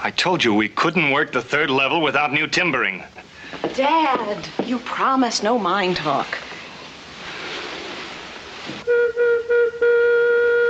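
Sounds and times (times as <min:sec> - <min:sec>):
speech: 0:00.0 - 0:06.5
steady hissing noise: 0:00.0 - 0:09.9
mine disaster whistle blasts: 0:08.8 - 0:10.6.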